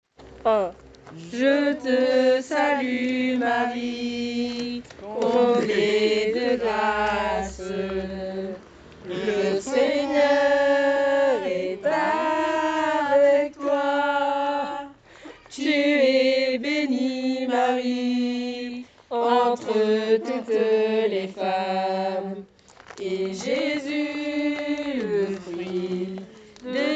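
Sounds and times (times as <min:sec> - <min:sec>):
chant: 0:01.1 - 0:26.9.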